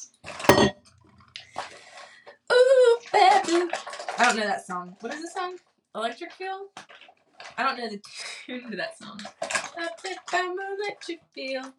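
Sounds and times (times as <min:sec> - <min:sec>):
glass clinking: 0:00.5 - 0:00.8
speech: 0:03.5 - 0:06.8, 0:07.6 - 0:11.7.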